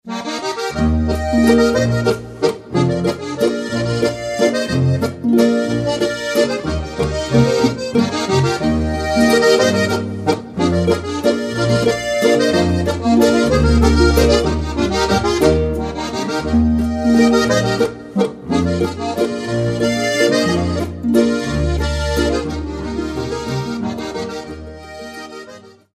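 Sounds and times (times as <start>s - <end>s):
waltz music: 0.1s - 25.9s.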